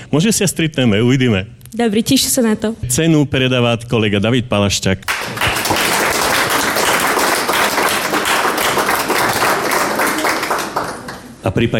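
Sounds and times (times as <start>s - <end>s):
speech: 0.1s - 5.5s, 11.4s - 11.7s
audience applause at an award presentation: 5.1s - 11.4s.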